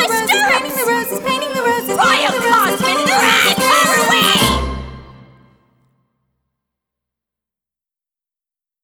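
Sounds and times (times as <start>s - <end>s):
guided vocal: 0.0s - 5.2s.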